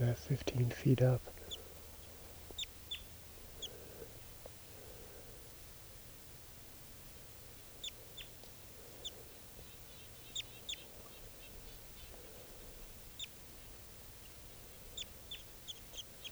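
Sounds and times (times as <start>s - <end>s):
speech: 0.0s - 1.4s
wild bird calling: 0.0s - 3.8s, 9.0s - 12.2s, 13.2s - 16.3s
low hiss and rumble: 0.0s - 5.7s.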